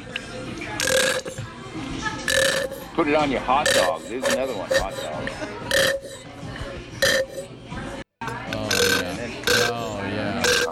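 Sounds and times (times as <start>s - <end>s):
person imitating an empty mustard squeeze bottle with wet sputtering mouth noises: 0.8s - 1.6s, 2.2s - 3.0s, 3.6s - 7.5s, 8.3s - 10.7s
speech: 3.0s - 5.5s.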